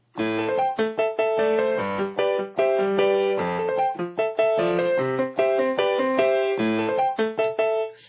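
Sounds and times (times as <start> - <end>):
piano: 0.0 - 8.0.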